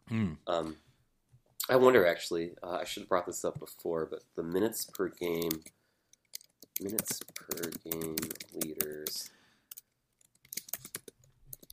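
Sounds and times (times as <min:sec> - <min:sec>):
speech: 0:00.1 - 0:00.8, 0:01.6 - 0:05.8, 0:06.8 - 0:09.4
computer keyboard clacking: 0:06.3 - 0:11.7.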